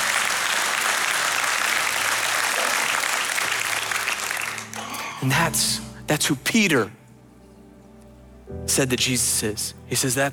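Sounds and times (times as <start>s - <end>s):
church audience applauding: 0.0s - 5.2s
speech: 5.2s - 7.0s, 8.6s - 10.3s.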